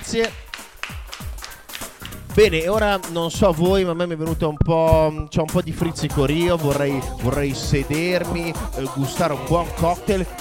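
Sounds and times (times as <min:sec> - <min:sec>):
sparse sharp hand claps: 0:00.0 - 0:02.4
speech: 0:00.1 - 0:00.4, 0:02.4 - 0:10.3.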